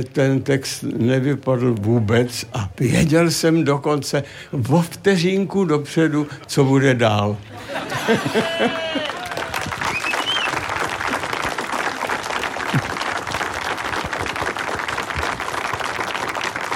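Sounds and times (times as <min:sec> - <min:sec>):
speech: 0:00.0 - 0:09.2
audience applause: 0:07.7 - 0:16.7.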